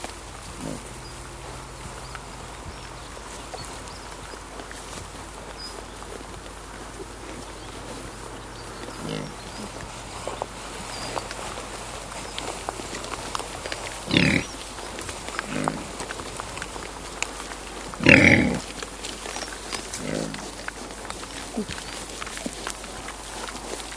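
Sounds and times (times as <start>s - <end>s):
wild boar giving a loud rough grunt: 0.0s - 23.9s.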